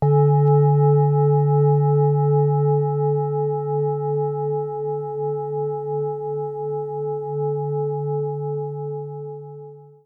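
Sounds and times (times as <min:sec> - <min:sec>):
singing bowl: 0:00.0 - 0:10.0.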